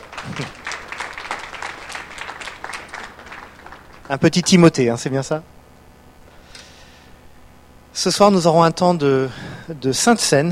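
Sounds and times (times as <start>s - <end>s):
audience applause: 0.0s - 5.2s
speech: 0.3s - 0.6s, 4.1s - 5.5s, 8.0s - 10.5s.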